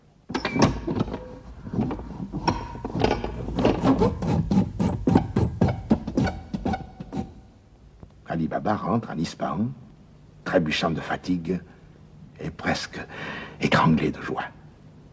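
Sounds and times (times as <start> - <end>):
magic door grinding shut: 0.3 - 7.4
speech: 8.7 - 9.8, 10.5 - 11.7, 12.4 - 14.6.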